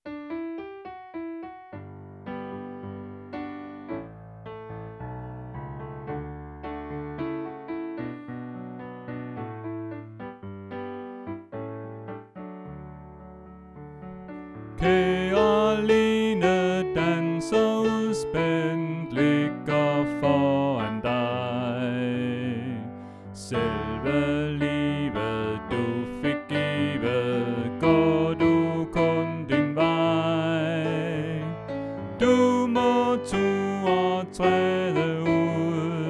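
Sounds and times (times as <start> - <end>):
soprano voice: 14.8 - 36.0.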